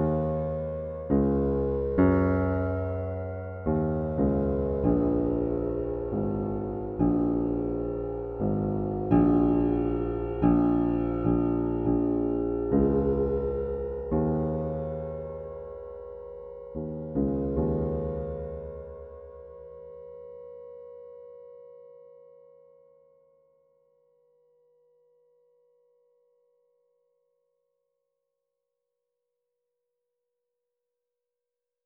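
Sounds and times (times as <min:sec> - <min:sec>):
modelled piano notes: 0:00.0 - 0:19.6.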